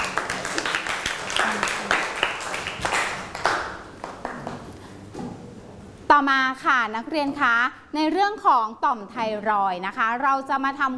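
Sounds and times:
classroom applause: 0.0s - 4.7s
speech: 6.2s - 10.9s.

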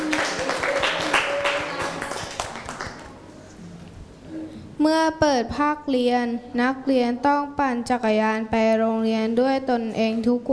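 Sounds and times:
classroom clapping for a classmate: 0.0s - 3.2s
speech: 4.8s - 10.5s.

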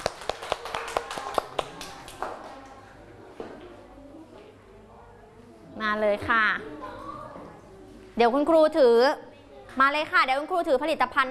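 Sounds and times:
classroom clapping hands: 0.0s - 2.8s
speech: 5.8s - 6.9s, 8.2s - 9.2s, 9.8s - 11.2s.

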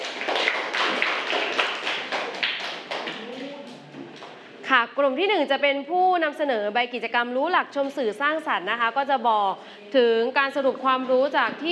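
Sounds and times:
students applauding: 0.0s - 3.8s
speech: 4.7s - 11.7s.

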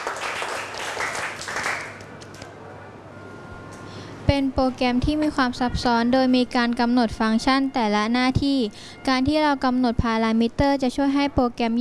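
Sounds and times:
classroom applause for a student: 0.0s - 2.4s
speech: 4.3s - 11.8s.

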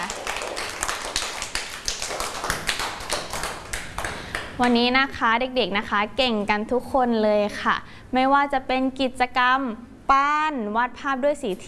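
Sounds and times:
children applauding: 0.0s - 4.5s
speech: 4.6s - 11.6s.

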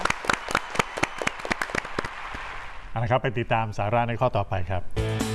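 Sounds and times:
applause: 0.0s - 2.8s
speech: 3.0s - 5.2s.

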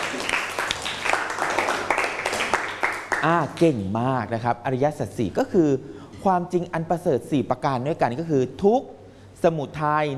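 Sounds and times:
classroom applause: 0.0s - 3.6s
speech: 3.2s - 10.1s.

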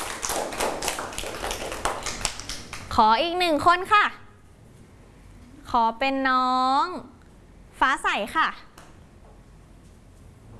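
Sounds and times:
classroom clapping: 0.0s - 3.0s
speech: 3.0s - 4.2s, 5.7s - 7.1s, 7.8s - 8.7s.

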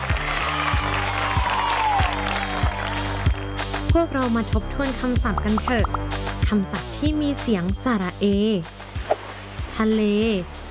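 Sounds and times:
children clapping hands: 0.0s - 3.7s
speech: 4.0s - 8.8s, 9.8s - 10.6s.

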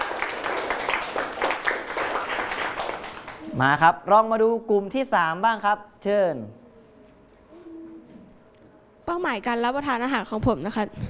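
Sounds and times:
classmates clapping: 0.0s - 3.5s
speech: 3.6s - 6.6s, 9.1s - 11.0s.

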